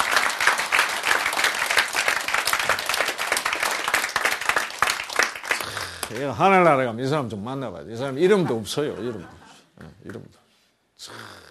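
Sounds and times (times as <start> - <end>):
crowd applause: 0.0 - 6.3
speech: 6.1 - 9.4, 10.1 - 10.4.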